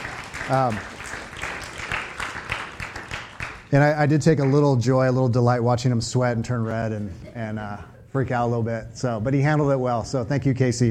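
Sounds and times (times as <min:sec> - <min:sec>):
audience applause: 0:00.0 - 0:04.6
speech: 0:00.5 - 0:00.9, 0:03.7 - 0:10.8.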